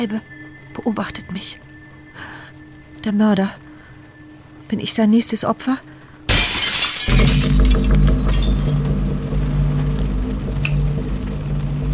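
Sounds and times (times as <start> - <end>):
speech: 0.0 - 2.3, 3.0 - 3.6, 4.7 - 6.0
low droning hum: 0.0 - 11.9
glass pane smashing: 6.3 - 9.0.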